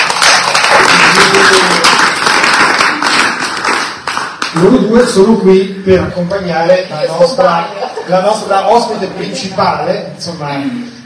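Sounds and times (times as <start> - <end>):
audience applause: 0.0 - 4.5
speech: 4.6 - 11.0
laughter: 7.4 - 9.6.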